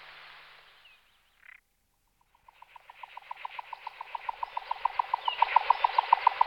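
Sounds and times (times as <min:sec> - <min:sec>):
jack snipe song galloping pulses: 0:02.2 - 0:06.4.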